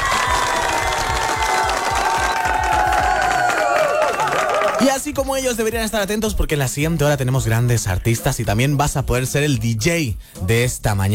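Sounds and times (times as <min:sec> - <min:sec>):
applause: 0:00.0 - 0:05.0
speech: 0:04.8 - 0:11.1.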